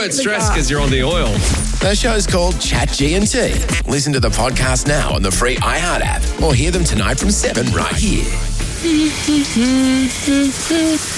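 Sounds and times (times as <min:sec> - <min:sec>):
speech: 0:00.0 - 0:11.1
shower running: 0:08.0 - 0:11.1.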